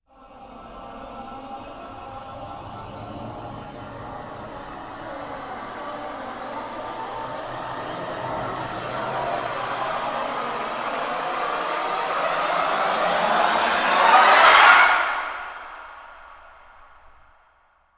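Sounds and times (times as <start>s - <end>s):
voices rising: 0.2s - 16.4s.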